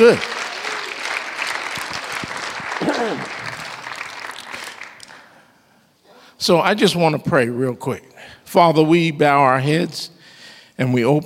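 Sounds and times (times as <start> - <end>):
speech: 0.0 - 0.4, 6.4 - 10.2, 10.8 - 11.2
audience clapping hands: 0.0 - 5.5.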